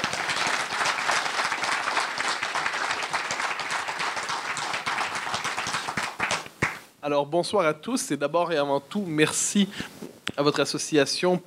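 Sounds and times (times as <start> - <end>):
crowd applauding: 0.0 - 6.8
speech: 7.1 - 11.4.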